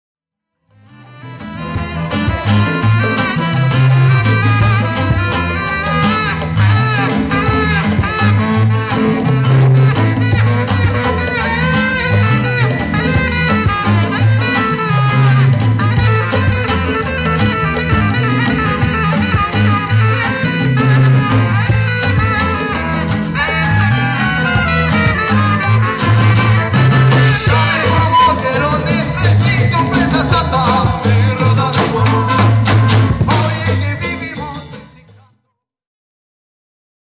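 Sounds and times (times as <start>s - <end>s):
saxophone solo: 0.7s - 34.9s.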